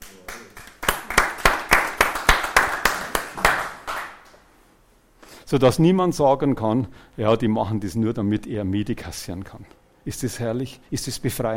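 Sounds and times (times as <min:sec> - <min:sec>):
audience clapping in unison: 0:00.0 - 0:04.5
speech: 0:05.5 - 0:11.5.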